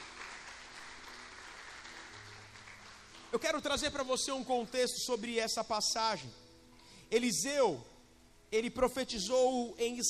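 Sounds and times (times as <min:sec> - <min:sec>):
audience applause: 0:00.0 - 0:03.5
speech: 0:03.3 - 0:06.4, 0:07.1 - 0:07.9, 0:08.5 - 0:10.0.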